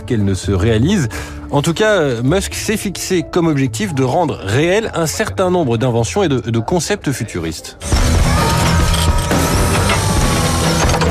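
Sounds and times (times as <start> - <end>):
speech: 0.1 - 8.2
superhero metal armor suit mechanically assembling: 7.8 - 11.0.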